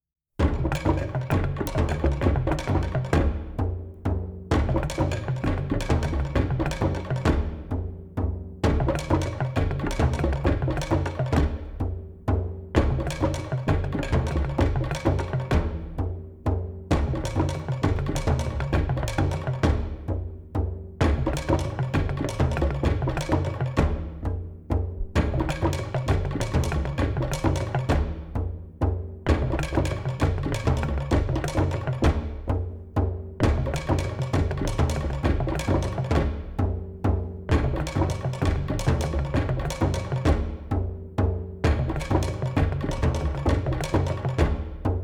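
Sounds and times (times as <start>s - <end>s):
distant drumming: 0.4s - 45.0s.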